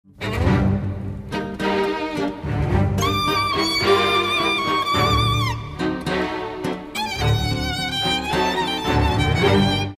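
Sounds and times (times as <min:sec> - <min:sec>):
tango music: 0:00.1 - 0:09.9.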